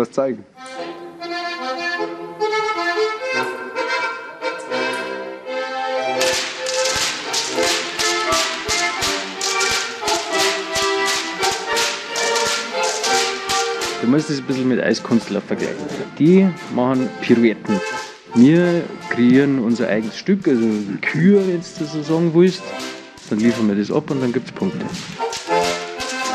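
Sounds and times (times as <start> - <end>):
speech: 0.0 - 1.4, 14.1 - 25.3
lively brass band music: 0.6 - 26.3
rhythmic whip cracking (Goaßlschnalzen): 6.1 - 16.0, 17.7 - 24.2, 24.8 - 26.3.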